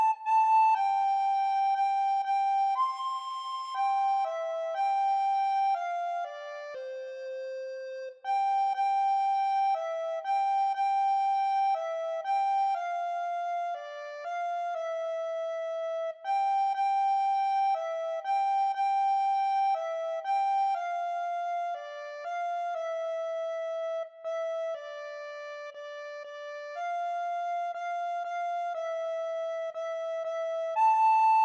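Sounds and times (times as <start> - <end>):
solo soprano recorder playing a Christmas carol: 0.0 - 31.4.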